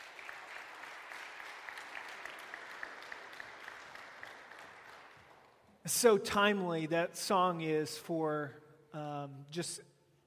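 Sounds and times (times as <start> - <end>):
round of applause: 0.0 - 5.8
speech: 5.8 - 10.2.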